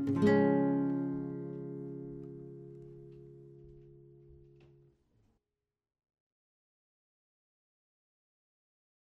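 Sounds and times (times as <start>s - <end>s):
guitar in D-flat: 0.0s - 5.0s.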